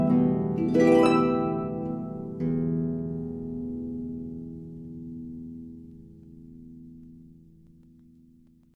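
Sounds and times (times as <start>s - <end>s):
Christmas carol played on the harp: 0.0s - 5.7s.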